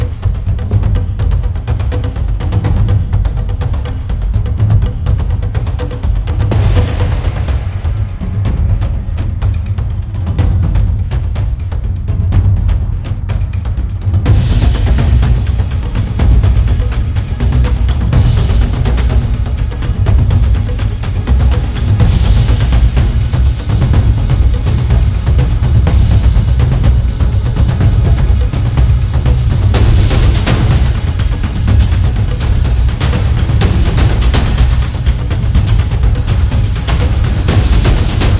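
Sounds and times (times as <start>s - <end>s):
traditional taiko drums: 0.0s - 38.3s.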